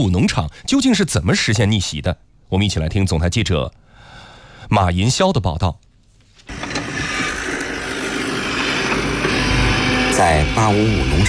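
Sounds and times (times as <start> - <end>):
speech: 0.0 - 3.8, 4.7 - 5.9, 10.2 - 11.2
high-horsepower tractor pulling a fertilizer seed drill: 6.5 - 11.2.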